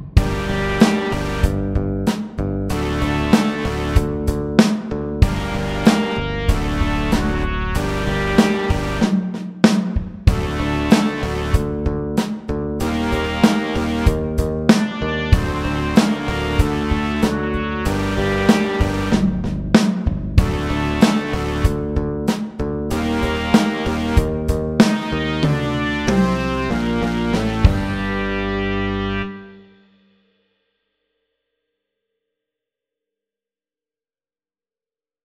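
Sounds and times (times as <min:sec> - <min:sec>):
slow electric rock music: 0:00.2 - 0:09.2, 0:10.3 - 0:29.2.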